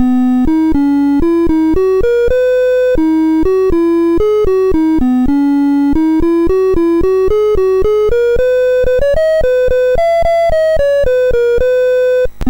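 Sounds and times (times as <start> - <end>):
MOS6581R4 SID chip music: 0.0 - 12.4.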